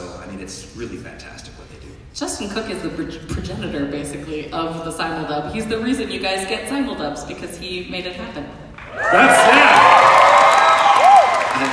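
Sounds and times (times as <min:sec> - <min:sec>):
speech: 0:00.4 - 0:09.6
audience applauding and cheering: 0:08.8 - 0:11.7.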